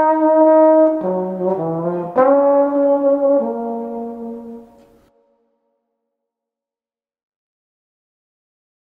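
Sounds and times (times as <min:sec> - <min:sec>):
wind instruments: 0:00.0 - 0:05.1.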